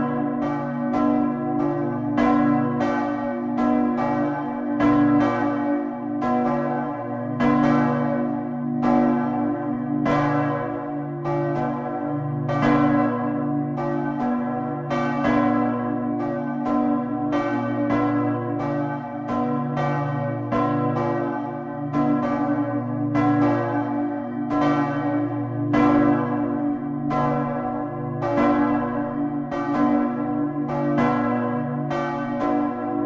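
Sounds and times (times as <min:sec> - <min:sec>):
church bells of St. Petri Kirche in Westerstede ringing: 0:00.0 - 0:33.0.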